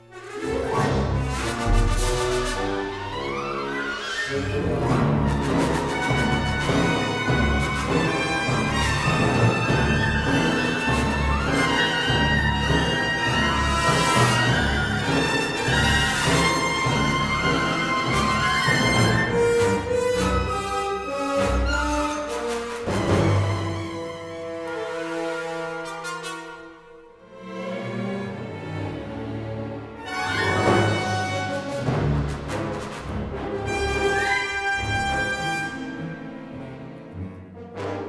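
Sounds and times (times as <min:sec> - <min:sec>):
music: 0:00.0 - 0:38.0.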